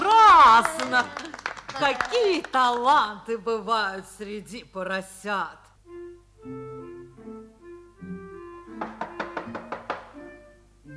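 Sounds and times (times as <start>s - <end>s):
speech: 1.0s - 5.7s
knocking on a door: 8.7s - 10.2s.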